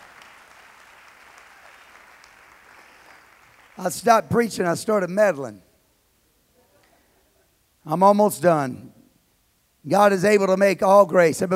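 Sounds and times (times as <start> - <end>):
audience clapping: 0.0 - 4.2
speech: 3.8 - 5.7, 7.9 - 8.9, 9.8 - 11.5.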